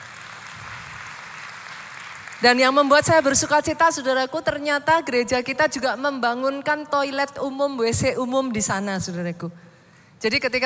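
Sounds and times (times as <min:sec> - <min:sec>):
audience applause: 0:00.0 - 0:02.4
speech: 0:02.4 - 0:10.6.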